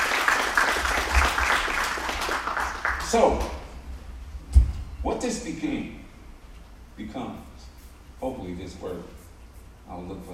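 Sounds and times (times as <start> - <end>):
audience applause at a religious talk: 0.0 - 3.6
speech: 3.1 - 3.5, 5.0 - 6.0, 7.0 - 7.5, 8.2 - 9.2, 9.9 - 10.3.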